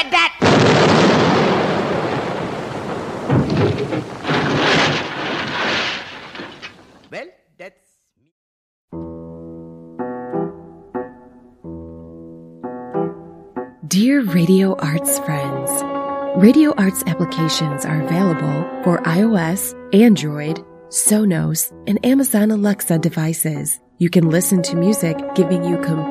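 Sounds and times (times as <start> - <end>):
cannon fire from a 21-gun salute: 0.4 - 6.8
sharp cracks: 0.7 - 7.2
musical tones: 13.9 - 20.2, 24.3 - 26.0
speech: 14.4 - 15.4, 16.4 - 26.0.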